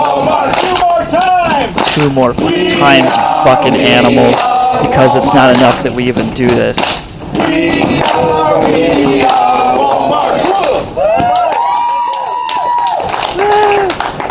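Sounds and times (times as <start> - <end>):
crowd shouting: 0.0 - 1.8, 2.4 - 5.6, 7.4 - 13.9
crowd clapping: 0.0 - 3.2, 6.8 - 14.3
speech: 2.0 - 7.7.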